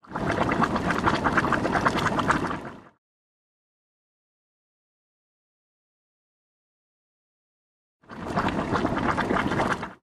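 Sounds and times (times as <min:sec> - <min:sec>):
hot spring water boiling: 0:00.0 - 0:03.0, 0:08.1 - 0:10.0.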